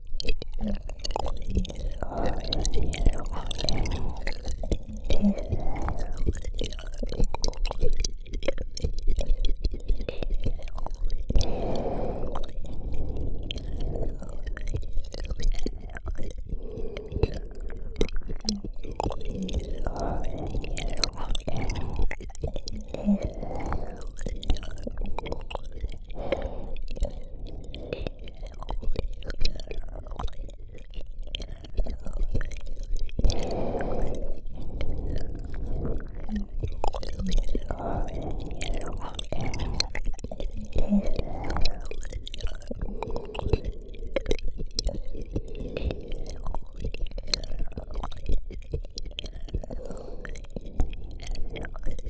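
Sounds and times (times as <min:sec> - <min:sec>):
ear licking: 0:00.0 - 0:52.0.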